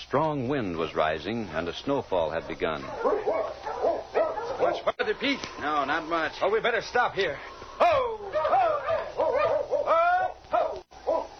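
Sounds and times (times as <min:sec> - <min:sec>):
speech: 0:00.1 - 0:03.3, 0:04.6 - 0:08.2
dog barking and whimpering: 0:02.8 - 0:04.9, 0:08.3 - 0:11.3.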